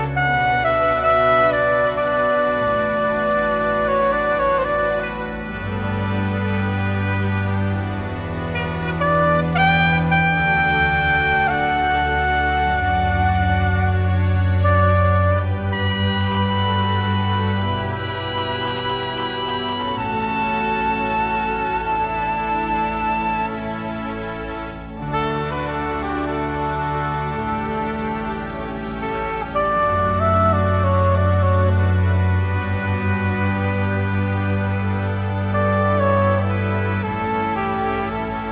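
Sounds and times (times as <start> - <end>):
organ: 0.0 - 38.5
saxophone: 0.0 - 38.5.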